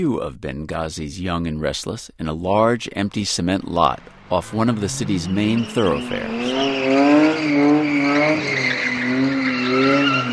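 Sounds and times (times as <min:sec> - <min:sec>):
speech: 0:00.0 - 0:10.1
fishtailing Toyota cars burning tire rubber on a cement lot in Benghazi: 0:04.0 - 0:10.3.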